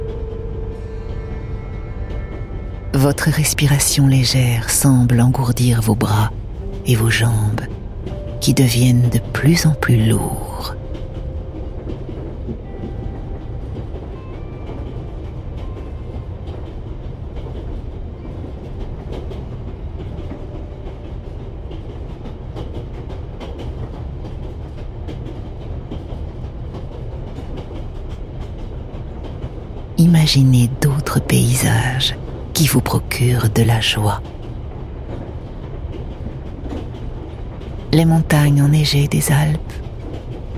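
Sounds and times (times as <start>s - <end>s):
train rumbling on rails: 0.0s - 40.5s
speech: 3.0s - 7.6s, 8.4s - 10.8s, 32.0s - 34.3s, 38.0s - 39.8s
clickety-clack of train wheels: 10.8s - 30.0s, 34.2s - 38.0s, 39.7s - 40.5s.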